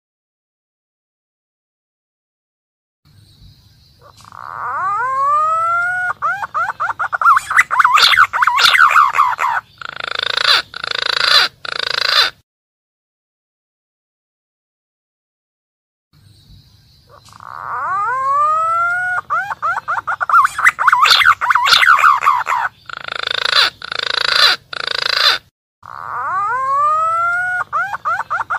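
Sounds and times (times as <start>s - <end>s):
green pigeon calling, used as a lure for wild birds: 4.0s - 12.4s, 17.0s - 28.5s.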